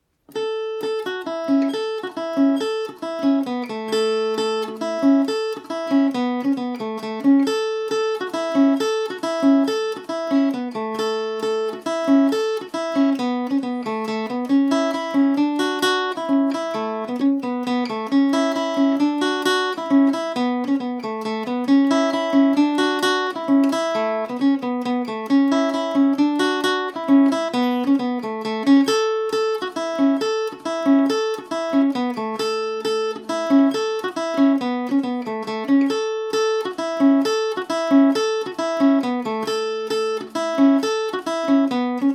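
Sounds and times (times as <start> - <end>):
Irish mandolin playing in A major: 0.3 - 42.1.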